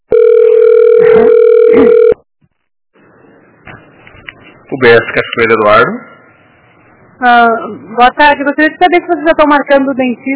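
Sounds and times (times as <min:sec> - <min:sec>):
telephone ringback tone while call waits: 0:00.1 - 0:02.2
speech: 0:04.8 - 0:06.1, 0:07.2 - 0:10.3.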